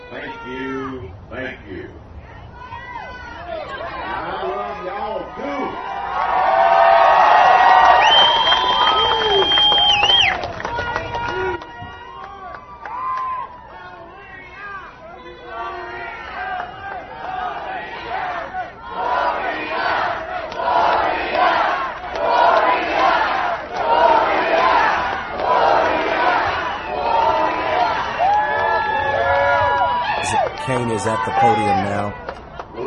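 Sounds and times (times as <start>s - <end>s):
speech: 0.4s - 2.1s
crowd of supporters cheering: 2.6s - 32.8s
sharp whistle: 8.0s - 10.4s.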